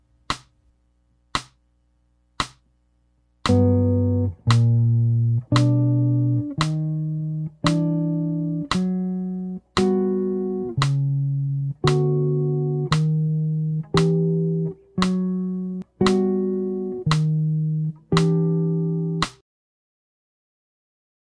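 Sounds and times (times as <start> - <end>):
jazz music: 3.5 - 19.3.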